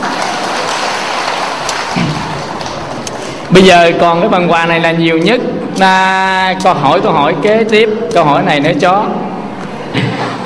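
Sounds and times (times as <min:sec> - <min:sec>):
audience applause: 0:00.0 - 0:03.0
speech: 0:03.5 - 0:09.2, 0:09.9 - 0:10.4.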